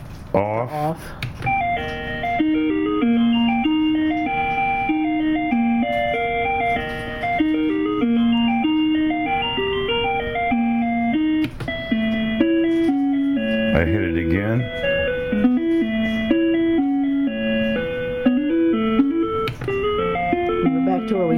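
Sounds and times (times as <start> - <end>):
speech: 0.3 - 1.3
electronic bell chime from a device: 1.5 - 21.3.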